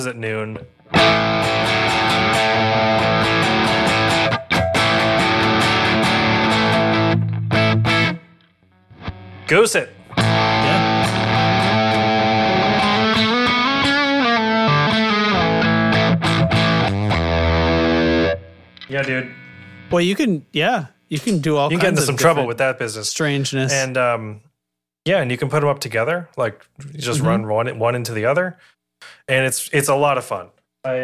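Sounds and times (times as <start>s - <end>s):
speech: 0.0s - 3.6s, 9.5s - 10.0s, 18.9s - 31.0s
heavily distorted effects unit crackling as knob turns: 0.6s - 20.0s.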